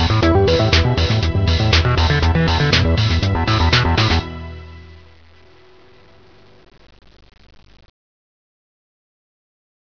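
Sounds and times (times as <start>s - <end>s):
rave music: 0.2s - 4.2s.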